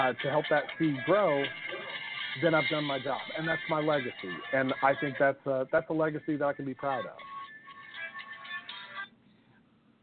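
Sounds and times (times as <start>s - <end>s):
speech: 0.1s - 1.7s, 2.3s - 7.3s
backup phone ringtone with bright electronic melody: 0.6s - 5.0s, 7.0s - 9.1s.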